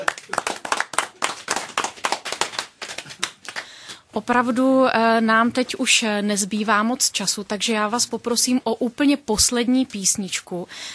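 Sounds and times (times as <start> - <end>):
audience applause: 0.0 - 3.7
speech: 4.2 - 10.9.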